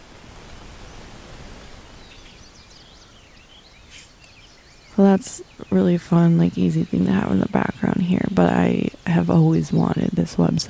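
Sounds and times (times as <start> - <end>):
rain on leaves: 0.0 - 2.6
speech: 5.0 - 10.6.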